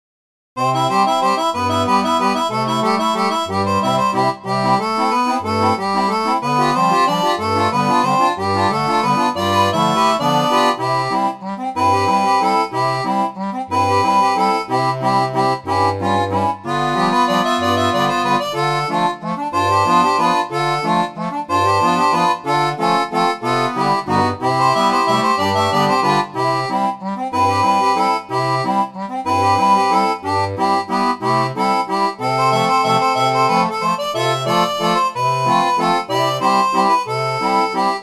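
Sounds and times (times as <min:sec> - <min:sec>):
barrel organ: 0:00.6 - 0:38.0.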